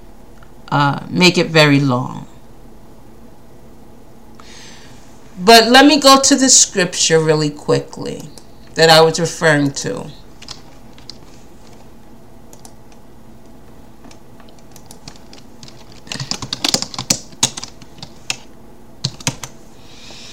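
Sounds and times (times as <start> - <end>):
faint steady hum: 0.0 - 20.3
speech: 0.7 - 2.2, 5.4 - 10.2
typing on a computer keyboard: 10.4 - 11.2, 12.5 - 13.0, 14.0 - 19.6.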